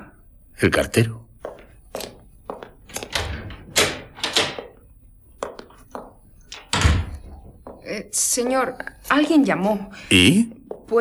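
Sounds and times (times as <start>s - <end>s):
speech: 0.6s - 1.2s, 8.0s - 10.9s
front door opening and shutting: 2.8s - 4.8s, 6.5s - 7.6s.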